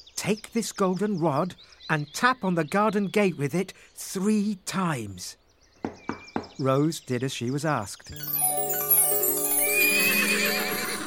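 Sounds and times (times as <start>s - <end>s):
speech: 0.2s - 5.4s, 6.6s - 8.6s
fine white horse with a golden saddle whinnying: 10.0s - 11.0s.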